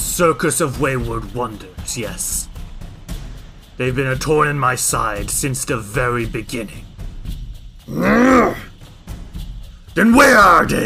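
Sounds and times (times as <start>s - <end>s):
speech: 0.2s - 2.5s, 3.8s - 6.9s, 7.9s - 8.7s, 10.0s - 10.8s
man roaring with a gravelly strained tone: 7.9s - 8.7s.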